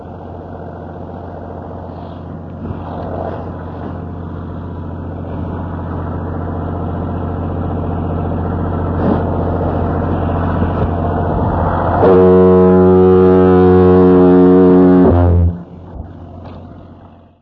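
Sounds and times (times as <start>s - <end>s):
diesel engines: 0.0s - 17.3s
diaphone horn: 11.7s - 15.7s.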